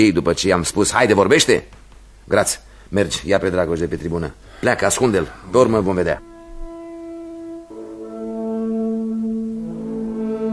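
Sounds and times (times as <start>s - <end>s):
speech: 0.0s - 6.3s
tulnic alphorn sounding an alarm: 6.2s - 10.5s.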